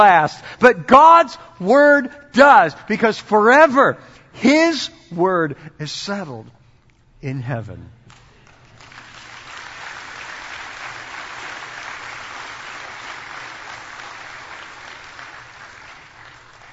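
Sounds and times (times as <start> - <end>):
speech: 0.0 - 6.6, 7.2 - 8.0
audience clapping: 8.1 - 16.7.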